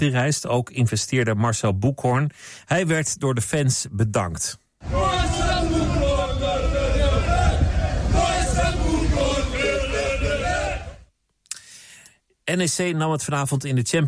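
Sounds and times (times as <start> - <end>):
speech: 0.0 - 6.0, 12.5 - 14.0
football stadium crowd in Greece: 4.8 - 11.0.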